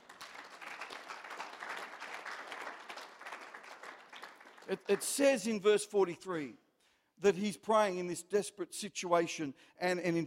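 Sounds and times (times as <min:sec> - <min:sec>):
audience clapping: 0:00.0 - 0:05.7
speech: 0:04.7 - 0:06.6, 0:07.2 - 0:10.2.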